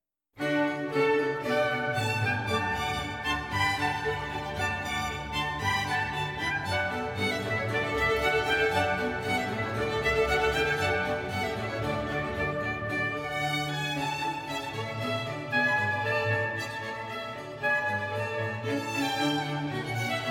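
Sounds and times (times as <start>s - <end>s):
allegro symphony in D major with trumpets: 0.4s - 20.3s.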